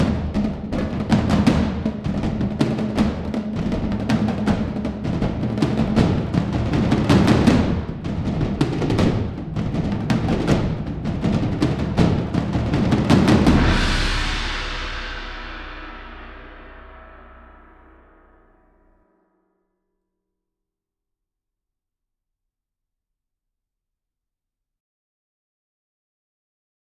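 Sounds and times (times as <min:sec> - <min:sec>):
solo percussion: 0:00.0 - 0:18.8.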